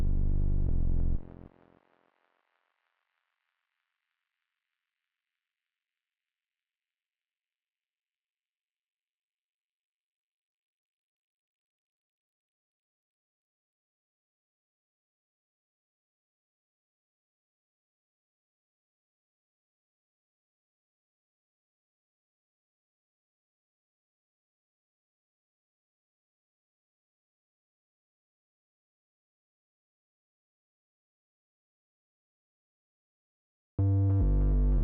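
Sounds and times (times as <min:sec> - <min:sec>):
deep sub bass: 0:00.0 - 0:01.5, 0:33.8 - 0:34.8.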